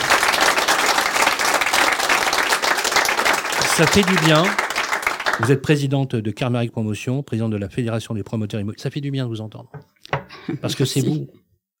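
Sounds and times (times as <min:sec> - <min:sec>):
audience applause: 0:00.0 - 0:05.6
speech: 0:03.8 - 0:04.6, 0:05.4 - 0:11.4.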